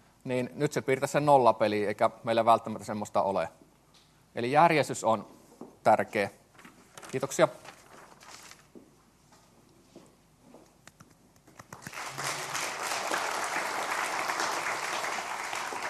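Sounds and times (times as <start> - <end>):
speech: 0.2 - 3.6, 4.4 - 6.4, 7.1 - 7.7
audience applause: 11.8 - 15.8.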